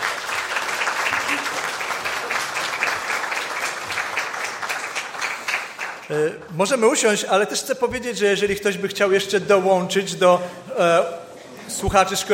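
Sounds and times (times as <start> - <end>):
audience applause: 0.0 - 6.5
speech: 6.1 - 12.3.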